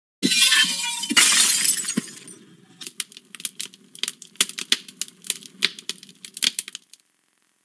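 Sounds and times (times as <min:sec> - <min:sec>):
glass breaking: 0:00.2 - 0:03.0.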